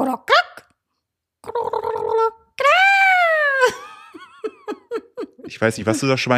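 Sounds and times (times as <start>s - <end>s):
speech: 0.0s - 0.3s, 5.5s - 6.3s
voice imitating fulmar cackling and gurgling calls: 1.4s - 2.4s
laughter: 3.5s - 6.3s.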